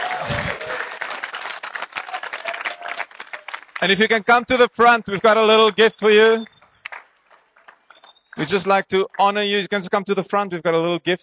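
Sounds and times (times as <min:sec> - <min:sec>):
enthusiastic audience applause: 0:00.0 - 0:04.5, 0:06.8 - 0:09.2
speech: 0:03.8 - 0:06.5, 0:08.4 - 0:11.2.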